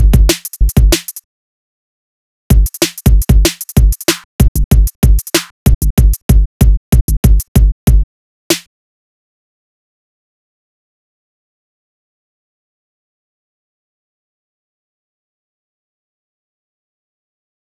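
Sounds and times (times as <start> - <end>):
drums: 0.0 - 1.2, 2.5 - 8.7.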